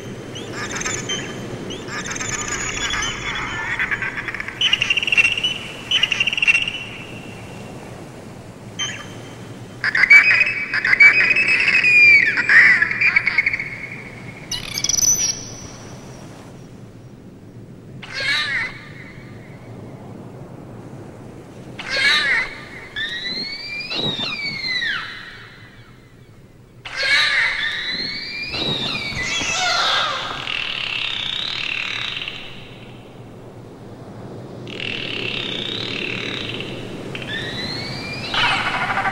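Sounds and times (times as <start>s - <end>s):
dolphins vocalizing: 0.0s - 7.2s, 9.8s - 15.6s, 18.0s - 19.5s, 21.8s - 25.9s, 26.8s - 33.0s, 34.6s - 39.1s.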